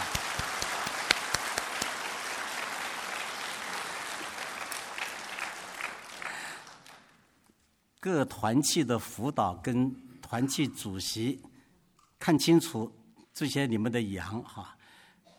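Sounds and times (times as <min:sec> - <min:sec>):
audience applauding: 0:00.0 - 0:07.2
speech: 0:08.0 - 0:11.5, 0:12.2 - 0:14.8.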